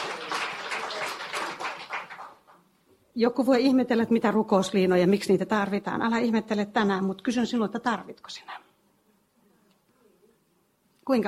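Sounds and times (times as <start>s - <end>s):
crowd applause: 0.0s - 2.6s
speech: 3.2s - 8.7s, 11.1s - 11.2s.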